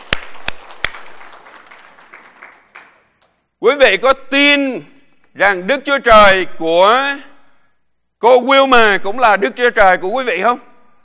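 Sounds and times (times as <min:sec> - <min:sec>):
church congregation clapping in praise during worship: 0:00.0 - 0:03.6
speech: 0:03.6 - 0:07.3, 0:08.2 - 0:10.7.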